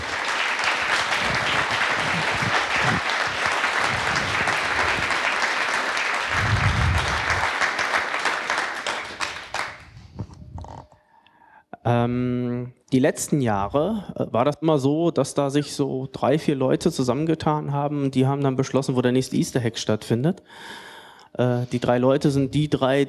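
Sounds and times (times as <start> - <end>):
audience applause: 0.0 - 9.9
speech: 13.0 - 23.0.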